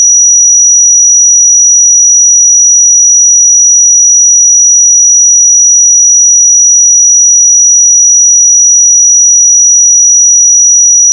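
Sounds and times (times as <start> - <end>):
pure 5829 Hz sine tone: 0.0 - 11.1.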